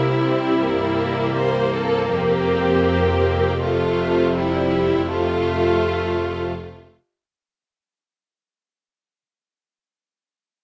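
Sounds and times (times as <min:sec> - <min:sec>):
baroque suite epilogue for string orchestra: 0:00.0 - 0:06.9.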